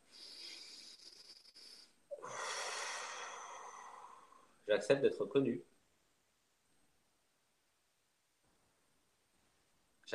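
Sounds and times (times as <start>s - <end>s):
deep breath: 0.0s - 4.6s
speech: 4.7s - 5.7s.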